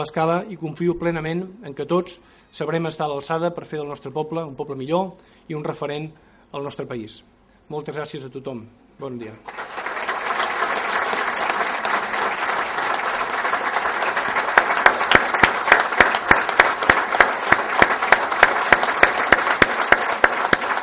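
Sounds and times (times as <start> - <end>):
speech: 0.0 - 9.6
long ovation ending a plenary session: 9.5 - 20.8.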